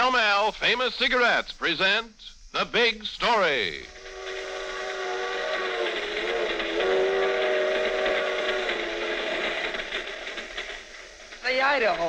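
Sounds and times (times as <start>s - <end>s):
speech: 0.5s - 4.0s, 11.5s - 12.0s
rolling freight train rumbling: 2.9s - 12.0s
long wavering steam whistle: 3.9s - 9.9s.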